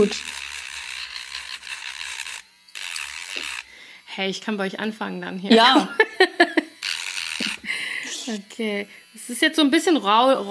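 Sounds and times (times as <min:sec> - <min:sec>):
speech: 0:00.0 - 0:00.4, 0:04.2 - 0:06.5, 0:08.3 - 0:10.4
gentle file rasping a surface: 0:00.0 - 0:03.7, 0:06.8 - 0:08.4
laughter: 0:05.5 - 0:06.7.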